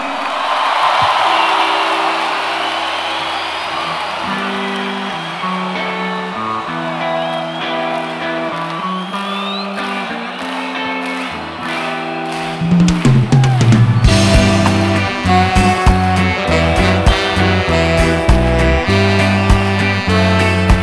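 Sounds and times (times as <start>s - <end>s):
crowd applause and cheering: 0.0s - 20.8s
sustained musical chords: 14.0s - 20.8s.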